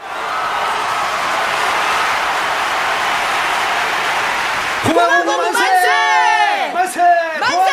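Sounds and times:
large crowd hissing roar: 0:00.0 - 0:06.8
many voices cheering with shouts and whoops: 0:00.0 - 0:07.7.

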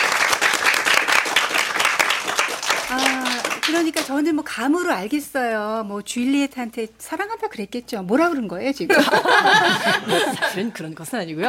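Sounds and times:
audience applause: 0:00.0 - 0:04.1
speech: 0:03.7 - 0:11.4
laughter: 0:08.9 - 0:10.8.

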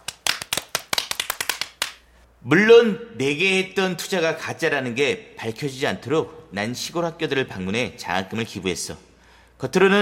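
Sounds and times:
hand clapping greeting a scholarship donor: 0:00.0 - 0:02.1
speech: 0:02.4 - 0:10.0.

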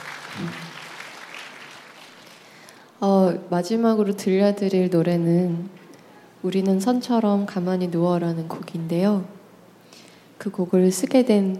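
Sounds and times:
audience applause: 0:00.0 - 0:02.8
speech: 0:00.4 - 0:00.8, 0:03.0 - 0:05.8, 0:06.4 - 0:09.4, 0:10.4 - 0:11.5.

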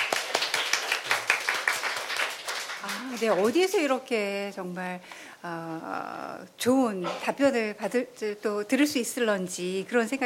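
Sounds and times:
audience applause: 0:00.0 - 0:03.4
speech: 0:02.8 - 0:10.2.

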